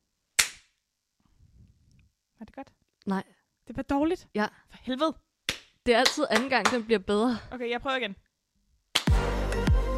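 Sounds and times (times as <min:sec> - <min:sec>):
speech: 0:02.4 - 0:05.2, 0:05.8 - 0:08.2
clapperboard clap: 0:05.5 - 0:06.9, 0:08.9 - 0:09.2.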